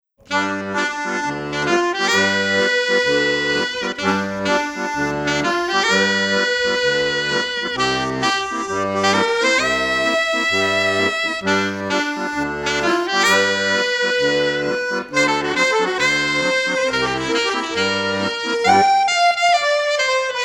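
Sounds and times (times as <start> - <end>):
duet: 0.2 - 20.4.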